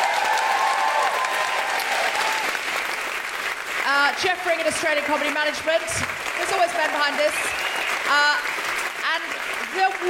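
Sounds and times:
audience round of applause: 0.0s - 10.0s
speech: 4.1s - 8.6s, 9.8s - 10.0s.

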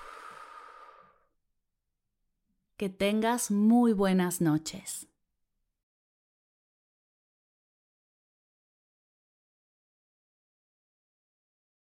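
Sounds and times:
long exhale in a guided breathing exercise: 0.0s - 1.3s
speech: 2.8s - 5.1s.

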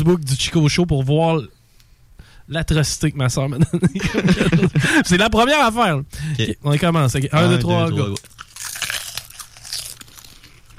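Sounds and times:
speech: 0.0s - 1.6s, 2.5s - 8.3s
laughter: 3.6s - 5.3s, 7.4s - 8.2s
crunching and chewing of a bad-tasting treat: 7.7s - 10.7s.

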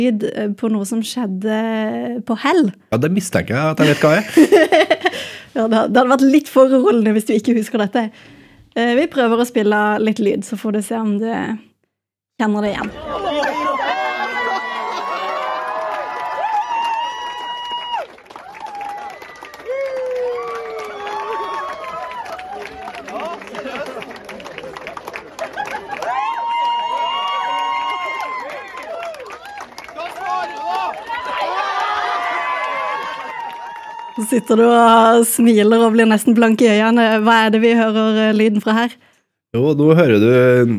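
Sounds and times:
speech: 0.0s - 4.9s, 5.5s - 11.7s, 12.4s - 13.5s, 34.3s - 40.7s
laughter: 3.8s - 5.4s, 12.8s - 15.9s, 22.6s - 26.5s
crowd cheering and shrieking at a marriage proposal: 12.8s - 34.7s.

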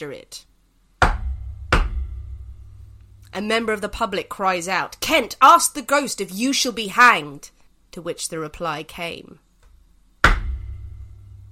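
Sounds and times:
speech: 0.0s - 0.5s, 3.3s - 9.4s
hand banging on a table: 1.0s - 2.4s, 10.2s - 10.9s.

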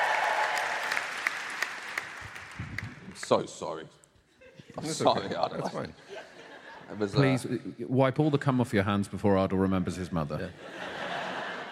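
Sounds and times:
audience applause at a live comedy storytelling show: 0.0s - 3.2s
speech: 3.3s - 4.0s, 4.8s - 6.1s, 6.9s - 11.0s
laughter: 4.3s - 7.3s, 10.5s - 11.7s.

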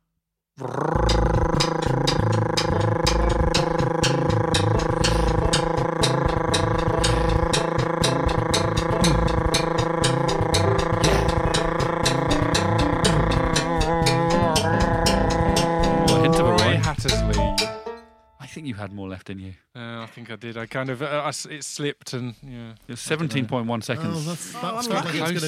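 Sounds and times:
speech: 0.6s - 0.9s, 19.3s - 25.4s
person producing long rolled R trill in a game-show challenge: 0.6s - 17.2s.

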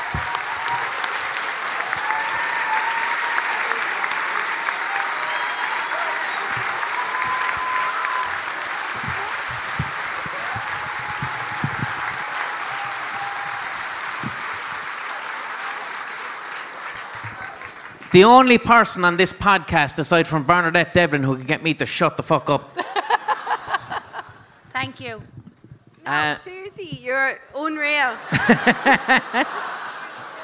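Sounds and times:
faint whoops and cheers: 0.0s - 16.2s, 17.0s - 17.8s
standing crowd applause: 0.0s - 19.3s, 28.2s - 30.4s
speech: 18.2s - 22.8s, 25.1s - 25.4s, 26.1s - 29.6s
laughter: 22.8s - 24.6s, 28.2s - 30.4s.

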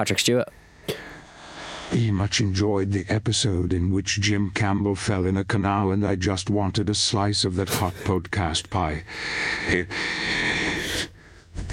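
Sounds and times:
speech: 0.0s - 0.6s, 1.9s - 11.1s
heavy breathing: 0.6s - 2.0s, 9.0s - 11.7s.

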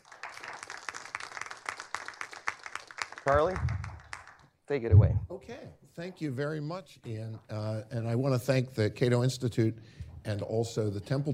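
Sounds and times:
small audience clapping to welcome guests at a Cato Institute event: 0.0s - 4.5s
speech: 3.2s - 3.8s, 4.7s - 11.3s.

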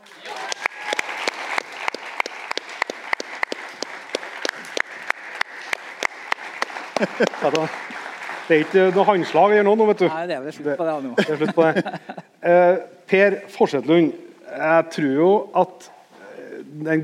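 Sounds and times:
audience applause welcoming the guest at a live hunting talk event: 0.0s - 10.3s
laughter: 6.8s - 8.0s, 11.0s - 12.4s
speech: 7.0s - 7.9s, 8.5s - 16.0s, 16.7s - 17.0s.

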